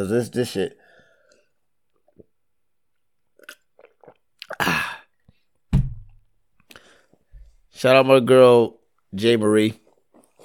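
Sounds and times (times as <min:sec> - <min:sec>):
speech: 0:00.0 - 0:00.8, 0:07.8 - 0:09.8
person drinking a sip of water: 0:01.2 - 0:05.4.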